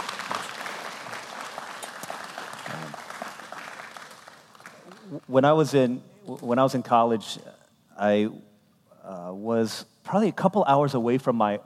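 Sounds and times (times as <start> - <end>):
audience applause: 0.0 - 5.2
speech: 5.1 - 8.5, 9.3 - 11.6.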